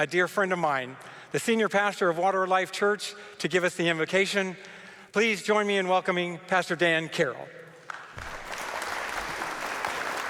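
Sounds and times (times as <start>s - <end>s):
speech: 0.0s - 7.6s
canned applause: 7.8s - 10.2s.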